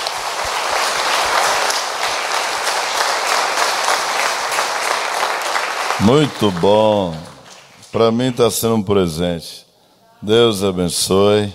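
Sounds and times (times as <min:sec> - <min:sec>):
audience applauding: 0:00.0 - 0:08.4
speech: 0:06.0 - 0:07.3, 0:07.9 - 0:09.6, 0:10.2 - 0:11.5.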